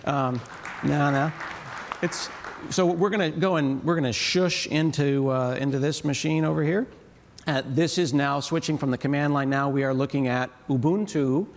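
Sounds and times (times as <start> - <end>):
small audience clapping: 0.0 - 3.3
speech: 0.0 - 11.5.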